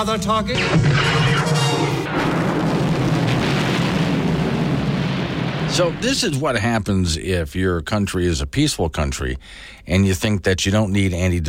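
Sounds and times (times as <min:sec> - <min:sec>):
speech: 0:00.0 - 0:01.1, 0:05.7 - 0:11.4
Death Star destroying planet Alderaan, Star Wars film explosion effect: 0:00.6 - 0:06.6.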